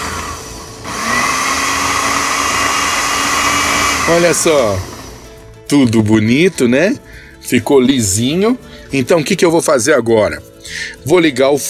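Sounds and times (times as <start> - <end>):
food processor blending beans into a smooth paste: 0.0 - 5.4
speech: 4.1 - 4.9, 5.7 - 11.6.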